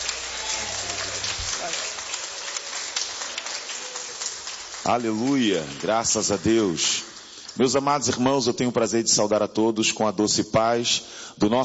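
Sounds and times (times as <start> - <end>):
audience clapping: 0.0 - 8.3
speech: 4.8 - 11.6.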